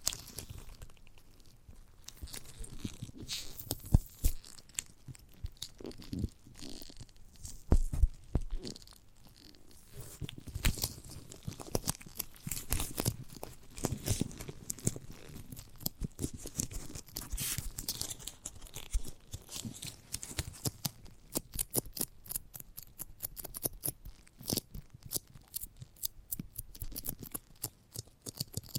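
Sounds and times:
chewing and biting into a giant gummy bear: 0.0s - 28.7s.

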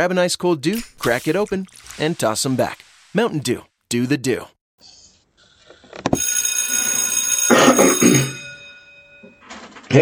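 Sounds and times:
speech: 0.0s - 4.9s, 7.8s - 8.4s
school bell ringing: 6.2s - 9.7s.

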